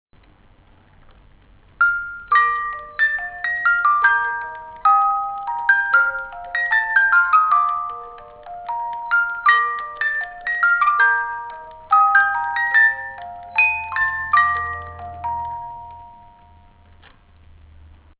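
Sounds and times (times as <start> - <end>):
music box: 1.8 - 17.0.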